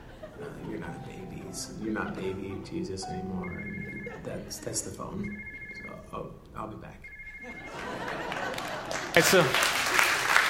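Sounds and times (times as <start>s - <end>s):
laughter: 0.0s - 1.5s, 3.8s - 5.3s, 7.4s - 9.7s
speech: 0.9s - 7.8s, 9.2s - 9.8s
audience applause: 7.7s - 10.4s.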